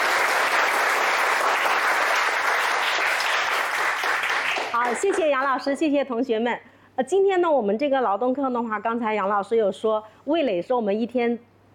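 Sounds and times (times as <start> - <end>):
audience applause welcoming a guest: 0.0 - 5.5
speech: 4.8 - 11.5.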